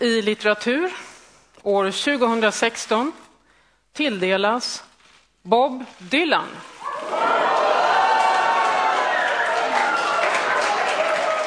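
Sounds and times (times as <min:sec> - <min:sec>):
speech: 0:00.0 - 0:01.0, 0:01.6 - 0:03.2, 0:03.9 - 0:06.7
crowd cheering and excited shouting: 0:06.8 - 0:11.4
clapping: 0:07.0 - 0:11.4.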